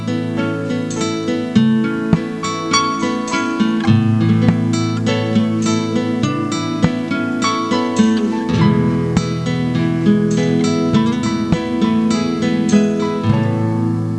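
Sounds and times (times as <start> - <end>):
Hawaiian music ringtone: 0.1 - 14.0.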